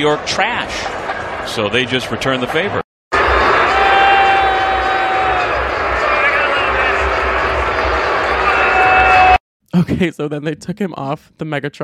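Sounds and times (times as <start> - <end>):
speech: 0.0 - 0.9, 1.5 - 2.8, 9.8 - 11.8
large stadium crowd booing: 3.1 - 9.4.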